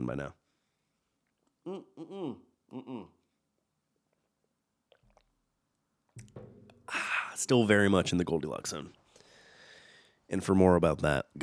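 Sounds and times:
speech: 0.0s - 0.4s, 1.6s - 3.2s, 6.2s - 9.0s, 10.3s - 11.4s
short voiced hums: 1.6s - 3.2s.

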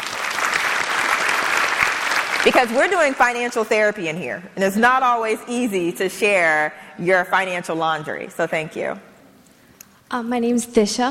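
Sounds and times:
audience applause: 0.0s - 3.2s
speech: 2.4s - 9.1s, 10.1s - 11.0s.

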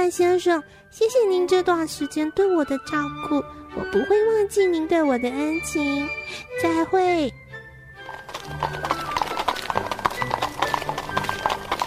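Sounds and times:
speech: 0.1s - 7.4s
horse-drawn carriage hoofbeats trotting: 8.0s - 11.8s.

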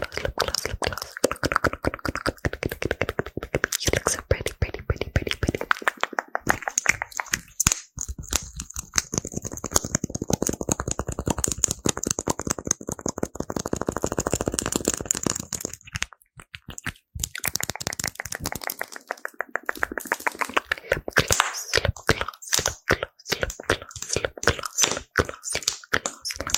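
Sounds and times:
mouth sounds: 0.0s - 8.4s, 16.6s - 26.5s
fast tapping, rattling and clicking: 0.0s - 26.5s.

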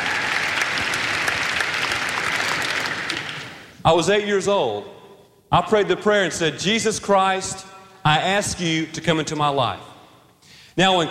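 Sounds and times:
audience applause: 0.0s - 3.8s
speech: 3.9s - 9.9s, 10.8s - 11.0s.

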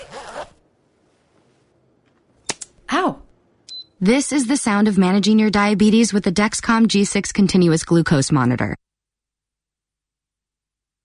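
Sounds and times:
finger-stick lancing device snap: 2.4s - 2.8s
speech: 4.0s - 8.8s.

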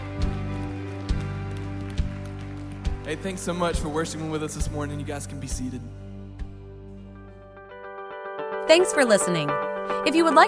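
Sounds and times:
audience clapping in time: 0.0s - 4.8s
speech: 3.1s - 6.0s, 8.7s - 10.4s.

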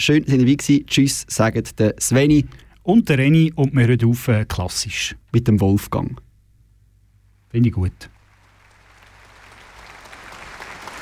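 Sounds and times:
speech: 0.0s - 6.2s, 7.5s - 8.1s
applause: 8.1s - 11.0s.

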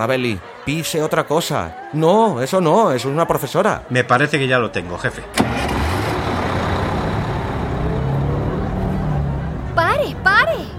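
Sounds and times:
speech: 0.0s - 5.7s
road noise: 4.7s - 10.7s
bus engine rumbling: 5.2s - 10.7s.

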